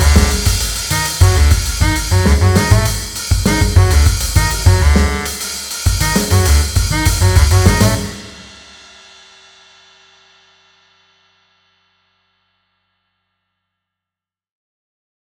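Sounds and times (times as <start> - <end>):
jazz trio playing: 0.0 - 8.5.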